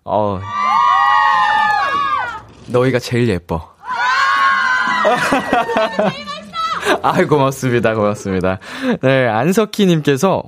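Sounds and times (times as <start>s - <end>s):
speech: 0.0s - 0.7s, 2.7s - 3.8s, 5.0s - 10.4s
audience cheering: 0.2s - 2.9s, 3.8s - 8.2s
laughter: 4.6s - 9.1s.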